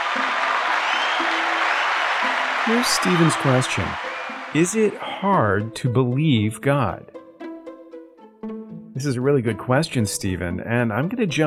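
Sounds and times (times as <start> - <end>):
round of applause: 0.0 - 5.2
speech: 2.7 - 7.1, 9.0 - 11.4.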